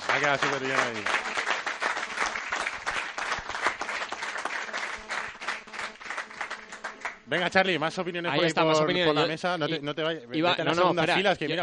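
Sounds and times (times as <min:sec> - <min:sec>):
audience applauding: 0:00.0 - 0:07.6
speech: 0:00.2 - 0:01.3, 0:07.3 - 0:11.6.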